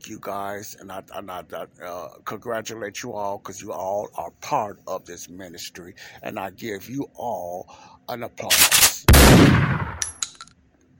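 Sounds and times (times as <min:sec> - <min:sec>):
speech: 0:00.1 - 0:09.0
gunshot: 0:08.5 - 0:10.1
metallic clinks: 0:10.0 - 0:10.6.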